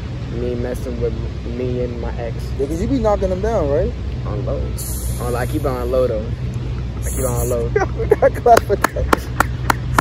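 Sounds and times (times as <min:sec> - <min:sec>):
speech: 0:00.4 - 0:09.4
people talking and laughing: 0:04.8 - 0:09.9
hand clapping: 0:08.5 - 0:09.9.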